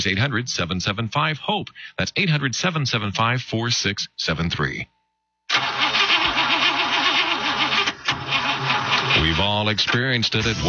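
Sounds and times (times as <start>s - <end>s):
speech: 0.0s - 4.9s, 9.2s - 10.6s
car engine starting: 5.5s - 10.6s.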